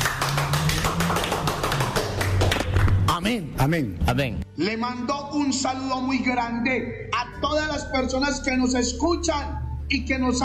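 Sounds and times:
crowd clapping in a fast steady rhythm: 0:00.0 - 0:03.4
speech: 0:03.2 - 0:10.4.

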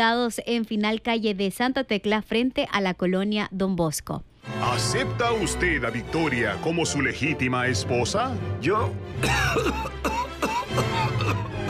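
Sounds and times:
speech: 0:00.0 - 0:11.4
coughing fit: 0:09.2 - 0:11.6.

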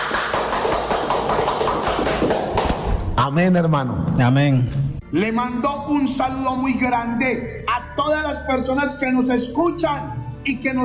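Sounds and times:
audience applauding: 0:00.0 - 0:02.8
speech: 0:03.3 - 0:10.8.

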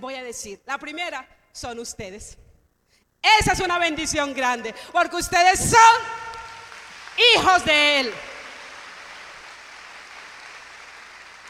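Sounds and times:
speech: 0:00.0 - 0:02.4, 0:03.2 - 0:06.2, 0:07.2 - 0:08.3
applause: 0:06.3 - 0:11.4.

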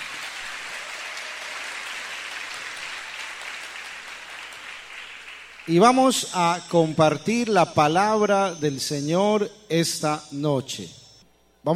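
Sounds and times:
audience applause: 0:00.0 - 0:05.9
speech: 0:05.6 - 0:11.0.

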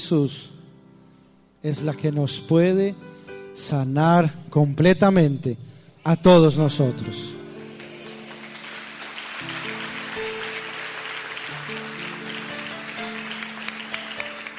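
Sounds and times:
speech: 0:00.1 - 0:00.6, 0:01.6 - 0:07.4
audience applause: 0:07.8 - 0:14.5.

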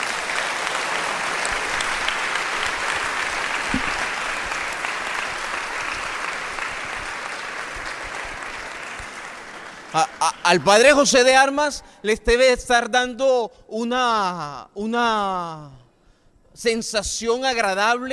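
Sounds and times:
audience applause: 0:00.0 - 0:10.9
speech: 0:10.0 - 0:15.8, 0:16.6 - 0:18.1.

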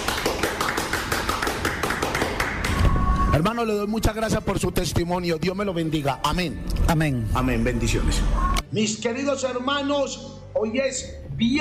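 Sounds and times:
audience applauding: 0:00.0 - 0:03.1
speech: 0:03.4 - 0:11.5.

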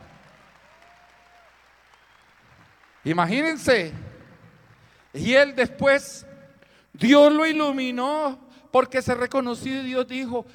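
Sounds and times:
audience applause: 0:00.0 - 0:05.2
speech: 0:03.0 - 0:04.1, 0:05.2 - 0:06.3, 0:07.0 - 0:10.5.

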